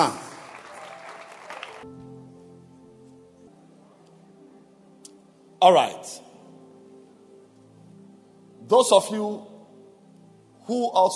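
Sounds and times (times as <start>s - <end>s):
audience clapping hands: 0.0s - 2.0s
speech: 5.6s - 6.3s, 8.7s - 9.5s, 10.7s - 11.1s.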